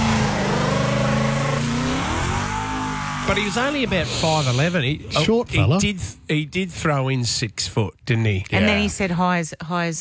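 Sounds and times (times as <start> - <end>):
Mustang car engine revving: 0.0 - 5.2
speech: 3.3 - 9.9.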